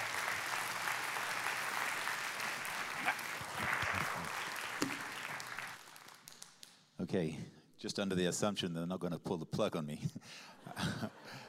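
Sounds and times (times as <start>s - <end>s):
audience applause welcoming a speaker onto the stage: 0.0s - 6.4s
speech: 7.1s - 11.4s.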